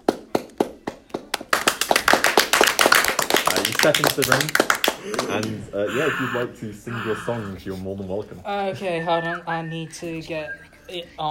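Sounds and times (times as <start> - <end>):
applause: 0.0 - 5.6
speech: 3.8 - 11.2.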